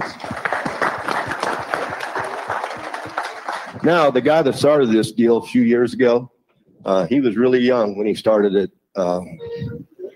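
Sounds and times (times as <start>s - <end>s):
crowd applauding: 0.0s - 4.6s
speech: 3.8s - 9.4s.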